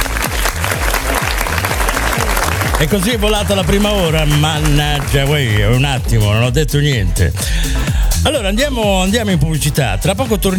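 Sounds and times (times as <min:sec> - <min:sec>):
studio audience applause: 0:00.0 - 0:05.8
rhythmic beat of music: 0:00.0 - 0:10.5
speech: 0:02.8 - 0:10.5.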